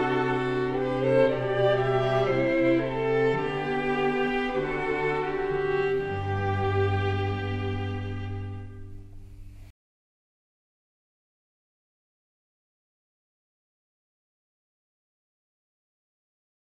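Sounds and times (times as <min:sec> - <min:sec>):
string quartet chamber ensemble playing: 0:00.0 - 0:09.4.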